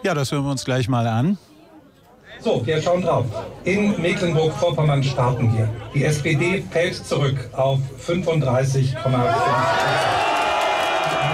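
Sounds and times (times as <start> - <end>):
speech: 0.0 - 1.5, 2.4 - 10.2
AfD supporters cheering at an election-night party by a lake near Schwerin: 9.0 - 11.3.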